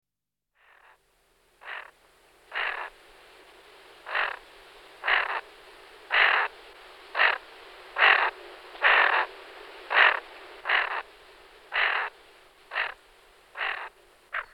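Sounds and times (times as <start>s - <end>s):
greater scaup giving rasping calls: 1.6s - 1.9s, 2.5s - 2.9s, 4.1s - 4.4s, 5.0s - 5.4s, 6.1s - 6.5s, 7.1s - 9.3s, 9.9s - 11.1s, 11.7s - 14.5s.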